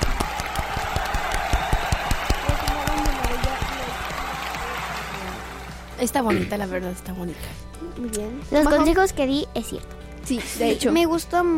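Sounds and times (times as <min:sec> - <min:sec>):
small group applauding: 0:00.0 - 0:06.0
speech: 0:06.0 - 0:11.5.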